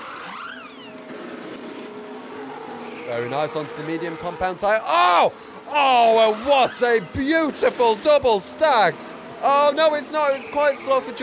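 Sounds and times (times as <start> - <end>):
Mercedes Formula 1 car engine whine entering the pits: 0.0 - 11.2
speech: 3.1 - 11.2.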